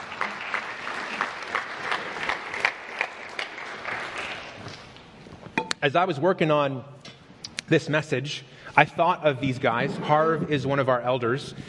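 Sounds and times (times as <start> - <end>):
audience applause: 0.0 - 4.8
speech: 5.8 - 7.0, 7.7 - 11.6.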